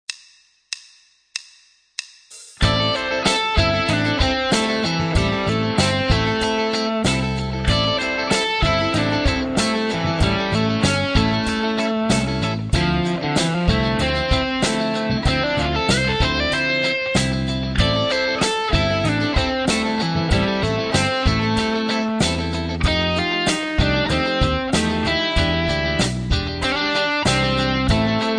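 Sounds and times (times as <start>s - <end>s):
rock and blues solos: 2.6s - 28.3s.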